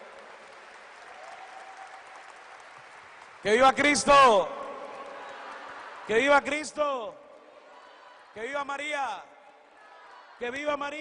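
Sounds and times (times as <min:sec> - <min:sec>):
audience applauding: 0:00.0 - 0:07.9
speech: 0:03.4 - 0:04.6, 0:06.1 - 0:07.2, 0:08.4 - 0:09.3, 0:10.4 - 0:10.9.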